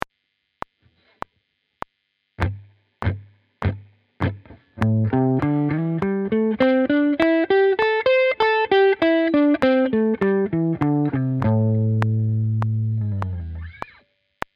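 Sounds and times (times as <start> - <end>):
blues guitar: 2.4 - 14.0.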